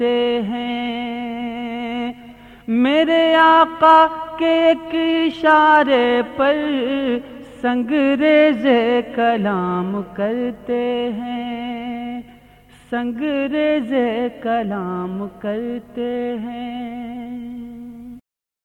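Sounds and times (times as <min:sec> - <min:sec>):
Islamic qawwali and naat singing: 0:00.0 - 0:18.2.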